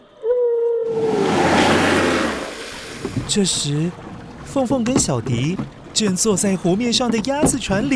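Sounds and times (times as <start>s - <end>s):
huge creature spouting water from a lake: 0.9s - 3.3s
speech: 3.3s - 7.9s.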